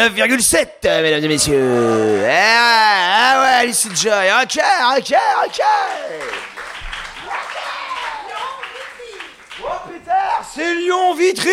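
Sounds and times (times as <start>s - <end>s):
speech: 0.0s - 6.4s, 10.6s - 11.5s
crowd applauding: 1.8s - 10.9s.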